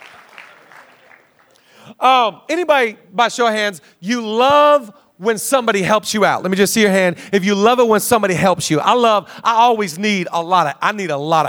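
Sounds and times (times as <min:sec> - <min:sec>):
audience clapping: 0:00.0 - 0:01.8
speech: 0:01.9 - 0:11.4.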